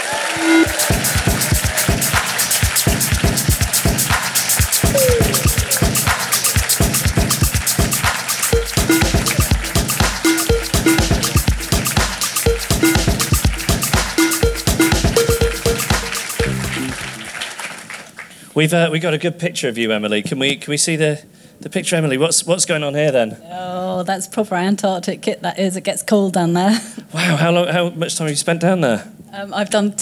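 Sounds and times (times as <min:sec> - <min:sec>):
audience applause: 0:00.0 - 0:18.4
speech: 0:18.6 - 0:29.9.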